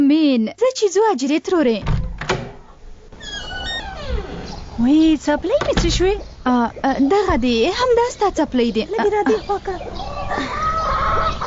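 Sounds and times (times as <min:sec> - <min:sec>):
speech: 0:00.1 - 0:02.0, 0:04.8 - 0:10.5
chickens clucking: 0:04.2 - 0:11.4.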